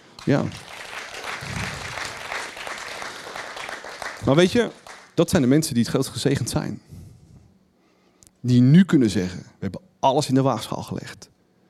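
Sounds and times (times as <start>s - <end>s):
speech: 0.2s - 0.7s, 4.2s - 7.0s, 8.4s - 11.3s
audience applause: 0.2s - 5.2s.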